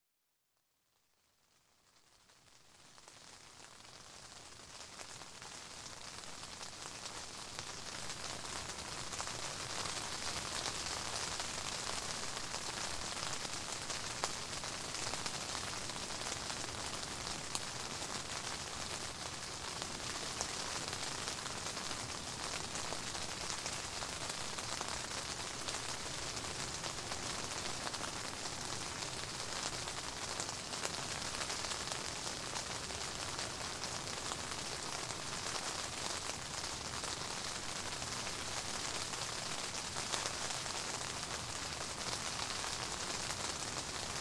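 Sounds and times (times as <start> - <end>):
rain on a tent: 1.5 - 44.1.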